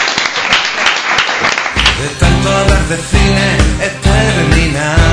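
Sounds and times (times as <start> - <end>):
studio audience applause: 0.0 - 2.0
speech: 2.0 - 5.0.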